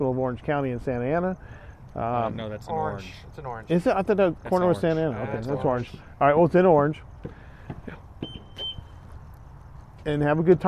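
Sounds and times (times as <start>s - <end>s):
speech: 0.0s - 8.0s, 10.0s - 10.6s
car alarm beeping: 8.2s - 9.2s.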